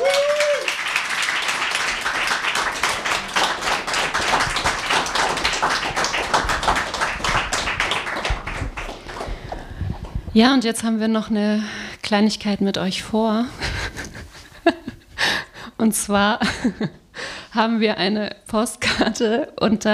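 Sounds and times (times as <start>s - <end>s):
audience applause: 0.0s - 10.2s
speech: 10.4s - 13.6s, 15.8s - 17.0s, 17.6s - 19.9s.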